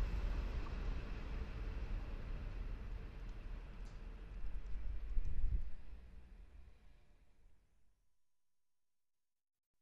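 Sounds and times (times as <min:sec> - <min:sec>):
train recorded in holophonic sound: 0:00.0 - 0:07.2.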